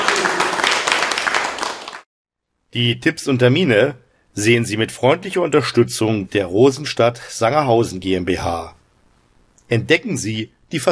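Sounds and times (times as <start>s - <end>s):
audience applause: 0.0s - 2.1s
speech: 2.8s - 8.8s, 9.7s - 10.8s.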